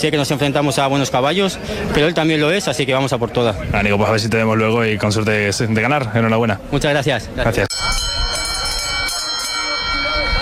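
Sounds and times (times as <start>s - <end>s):
speech: 0.0s - 8.0s
starting bell ringing for horse race: 7.7s - 10.4s.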